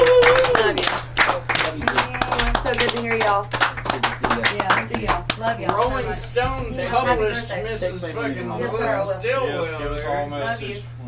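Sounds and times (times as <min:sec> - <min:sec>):
audience clapping by hand: 0:00.0 - 0:06.4
speech: 0:03.3 - 0:03.6, 0:04.4 - 0:11.0.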